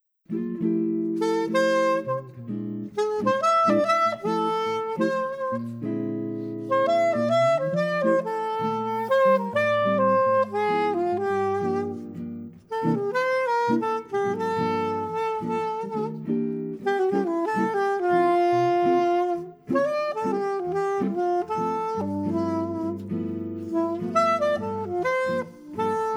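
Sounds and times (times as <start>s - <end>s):
prelude: 0.3s - 26.1s.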